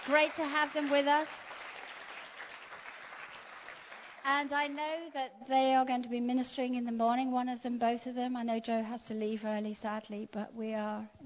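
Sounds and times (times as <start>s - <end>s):
church congregation applauding visiting pastors from Manchester: 0.0s - 4.4s
speech: 0.1s - 1.4s, 4.2s - 11.2s.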